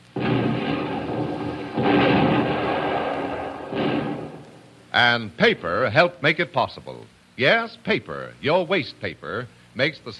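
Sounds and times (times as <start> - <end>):
United States Third Fleet naval artillery shelling Tokyo Bay: 0.0 - 5.2
speech: 5.0 - 10.1.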